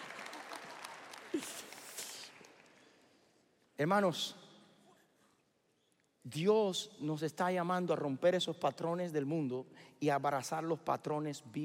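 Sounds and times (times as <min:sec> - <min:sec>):
audience applause: 0:00.0 - 0:02.9
speech: 0:01.3 - 0:01.7, 0:03.8 - 0:04.4, 0:06.2 - 0:11.6.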